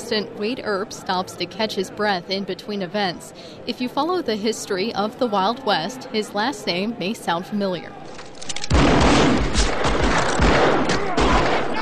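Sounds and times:
speech: 0.1s - 8.2s
gunfire from the gunfight scene of the 1994 film Wyatt Earp: 8.7s - 11.7s.

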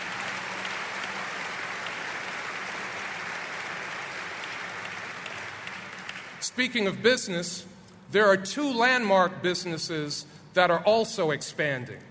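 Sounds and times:
audience applause: 0.0s - 6.5s
speech: 6.4s - 12.0s.

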